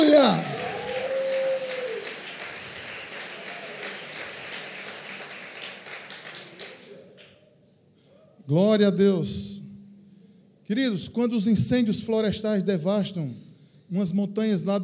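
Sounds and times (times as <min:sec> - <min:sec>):
audience applause: 0:00.0 - 0:07.3
speech: 0:08.5 - 0:09.5, 0:10.7 - 0:14.8.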